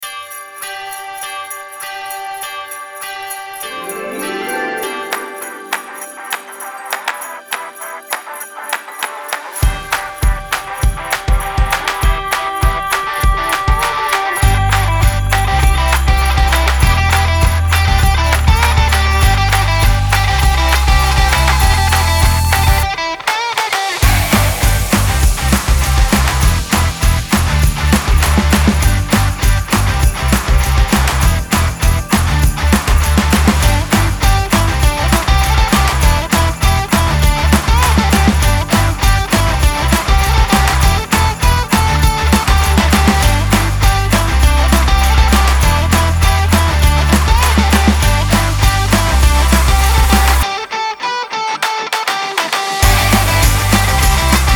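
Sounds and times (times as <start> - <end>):
christmas rock music: 0.0 - 54.5.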